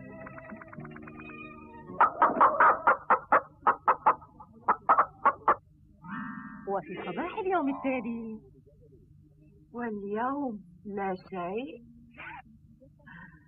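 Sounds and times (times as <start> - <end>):
greedy egg-laying hen clucking: 1.9 - 8.1
speech: 6.8 - 8.5, 9.8 - 11.9.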